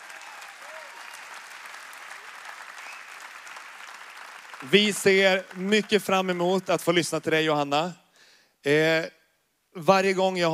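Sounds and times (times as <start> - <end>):
audience applause: 0.0 - 7.1
speech: 4.6 - 8.0, 8.6 - 9.2, 9.8 - 10.5.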